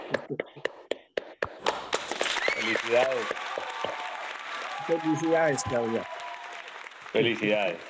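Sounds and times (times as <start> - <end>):
speech: 0.3 - 0.7, 2.6 - 3.6, 4.9 - 6.1, 7.1 - 7.8
people applauding: 1.6 - 7.8.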